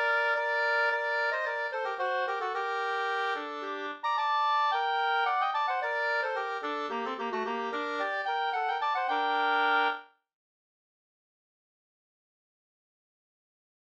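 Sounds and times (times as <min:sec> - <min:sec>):
polska folk dance tune: 0:00.0 - 0:10.0.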